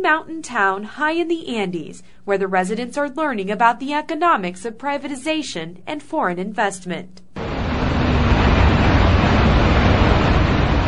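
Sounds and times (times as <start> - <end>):
speech: 0.0 - 7.2
Doe Run lead, copper and zinc smelter roaring in La Oroya, Peru: 7.4 - 10.8.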